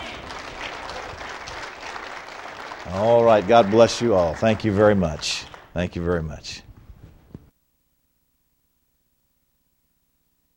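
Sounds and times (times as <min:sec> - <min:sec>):
church congregation clapping to welcome new members: 0:00.0 - 0:06.8
speech: 0:02.9 - 0:06.7.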